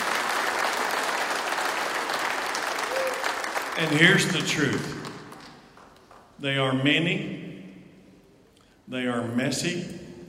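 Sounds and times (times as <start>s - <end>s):
audience applause: 0.0s - 6.2s
speech: 3.8s - 5.0s, 6.4s - 7.5s, 8.9s - 10.0s.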